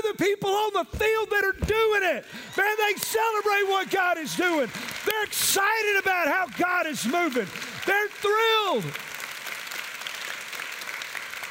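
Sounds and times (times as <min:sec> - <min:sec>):
speech: 0:00.1 - 0:09.1
golf clap, quiet polite applause: 0:02.3 - 0:11.4.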